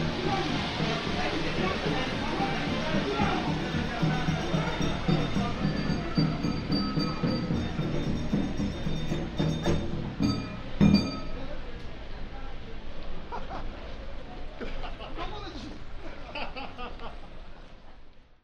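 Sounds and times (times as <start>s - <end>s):
chindon street band music: 0.0s - 12.0s
laughter: 13.1s - 18.0s.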